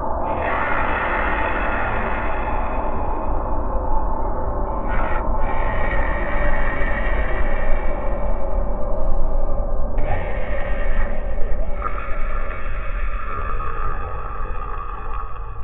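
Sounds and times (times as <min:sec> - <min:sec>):
vocal drone: 0:00.1 - 0:15.6.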